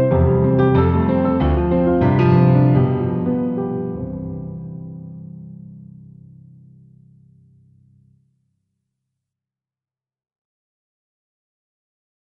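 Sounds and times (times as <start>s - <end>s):
studio grand piano: 0.0s - 8.1s.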